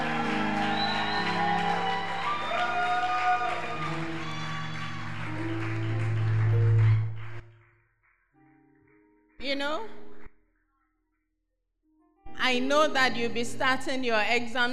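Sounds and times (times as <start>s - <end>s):
whoops and raised voices: 0.0s - 5.2s
audience clapping: 0.0s - 7.6s
speech: 9.5s - 10.0s, 12.5s - 14.7s.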